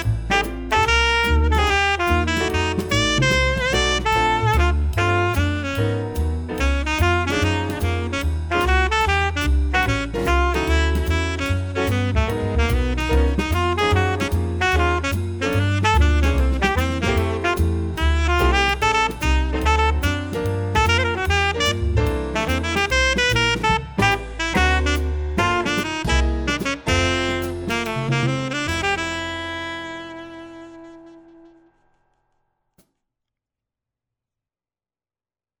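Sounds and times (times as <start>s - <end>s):
alto sax playing swing etude: 0.0s - 31.8s.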